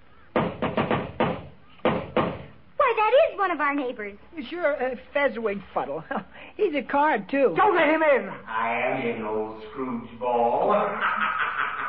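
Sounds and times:
knocking on a door: 0.3s - 2.6s
speech: 3.4s - 11.2s
laughter: 10.4s - 11.8s.

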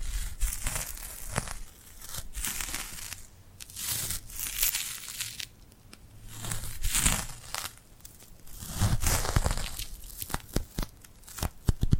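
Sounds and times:
sticky glued hands pulled apart and pressed together: 0.0s - 11.9s.

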